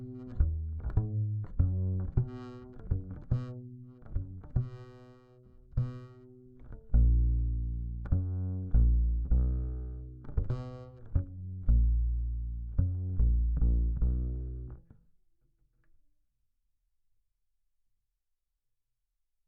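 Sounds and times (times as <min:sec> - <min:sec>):
bass guitar recorded by direct input: 0:00.0 - 0:15.0.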